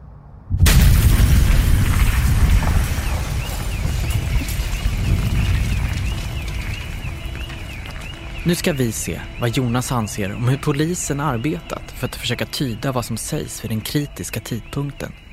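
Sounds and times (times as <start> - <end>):
reconstructed bomb explosion sound effect: 0.5 - 8.5
speech: 8.5 - 15.2.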